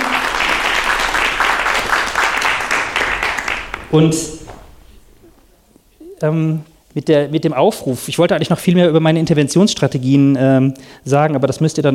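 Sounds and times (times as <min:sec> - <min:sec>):
audience applause: 0:00.0 - 0:04.8
speech: 0:03.9 - 0:04.4, 0:06.2 - 0:11.9.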